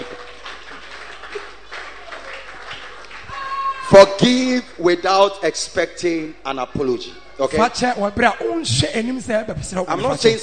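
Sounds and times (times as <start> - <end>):
audience clapping hands: 0.0 - 4.0
speech: 3.9 - 10.4.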